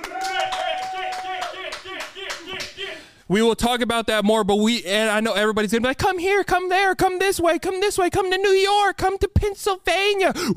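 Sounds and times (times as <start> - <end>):
hands clapping: 0.0 - 2.9
speech: 3.3 - 10.5.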